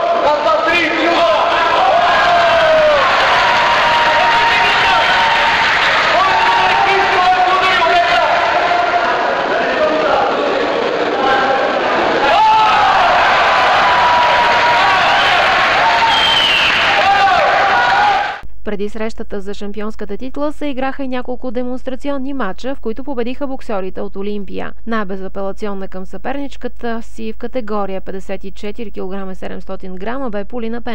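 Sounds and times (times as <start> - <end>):
boxing crowd cheering and applauding: 0.0 - 18.4
speech: 18.7 - 30.9.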